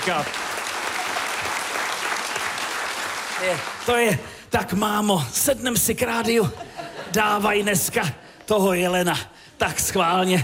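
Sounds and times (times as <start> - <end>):
audience applause in Havlíčkův Brod at a touring radio show: 0.0 - 4.1
speech: 0.1 - 0.5, 3.4 - 10.4
laughter: 6.3 - 8.0.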